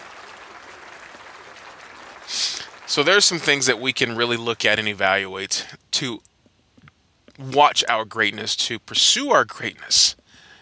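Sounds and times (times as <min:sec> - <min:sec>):
hand clapping: 0:00.0 - 0:04.7
speech: 0:02.9 - 0:06.3, 0:07.4 - 0:10.2.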